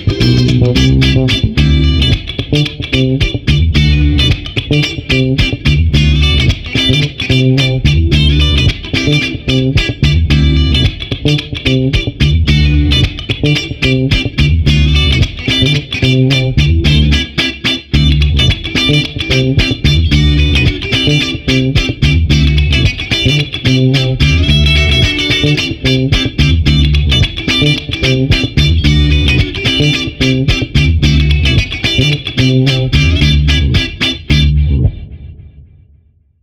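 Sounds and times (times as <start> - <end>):
funk boogie bass guitar: 0.0 - 35.6.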